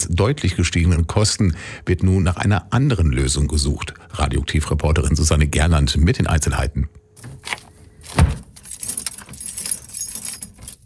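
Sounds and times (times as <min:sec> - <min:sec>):
speech: 0:00.2 - 0:08.2
bunch of keys jangling: 0:08.4 - 0:10.8.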